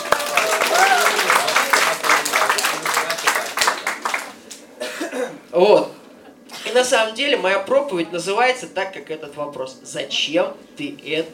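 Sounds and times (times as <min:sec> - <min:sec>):
church congregation clapping for one another after a game: 0:00.0 - 0:04.7
speech: 0:05.6 - 0:06.0, 0:06.8 - 0:11.3.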